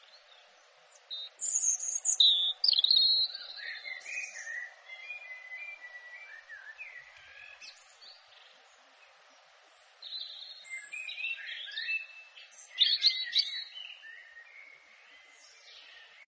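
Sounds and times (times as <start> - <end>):
European robin singing: 0.0 - 16.2.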